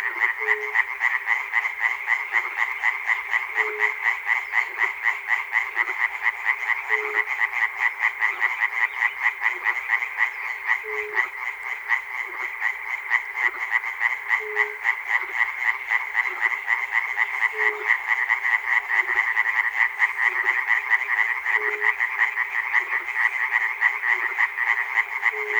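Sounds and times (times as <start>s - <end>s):
frogs calling in a dense chorus of rattling croaks in Chernobyl: 0.0s - 25.5s.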